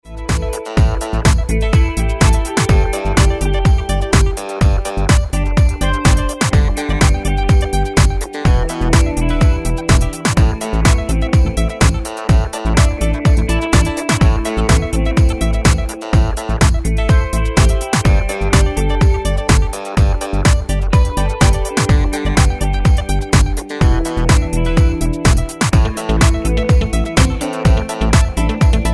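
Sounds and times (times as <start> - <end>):
karaoke singing: 0.2 - 28.9.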